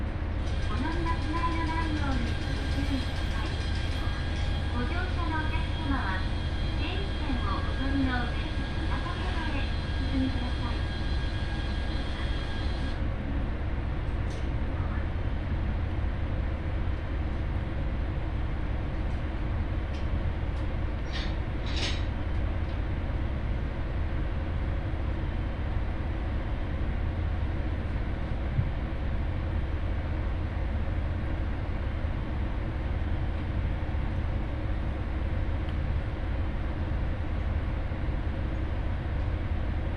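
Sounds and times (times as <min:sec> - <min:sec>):
Ihara Railway train car running from Souun-no-Sato Ebara to Soja: 0:00.0 - 0:39.9
voices aboard an Ihara Railway train: 0:00.6 - 0:11.0.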